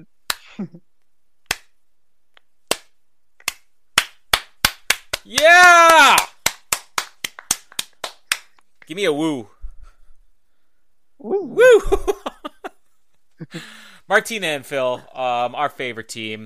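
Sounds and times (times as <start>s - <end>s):
speech: 0.0s - 0.9s, 5.3s - 6.3s, 8.9s - 9.6s, 11.2s - 12.2s, 13.4s - 16.4s
crowd slow clapping: 4.0s - 8.6s.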